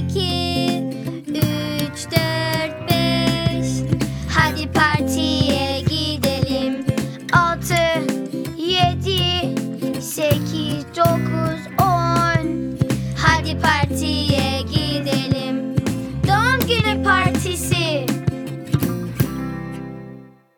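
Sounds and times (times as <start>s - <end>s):
Turkish song: 0.2s - 20.4s.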